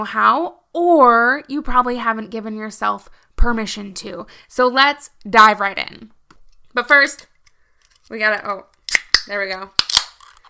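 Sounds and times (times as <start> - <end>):
speech: 0.0 - 6.2, 6.8 - 7.3, 8.1 - 9.9
cold beer can being cracked open: 8.8 - 10.4.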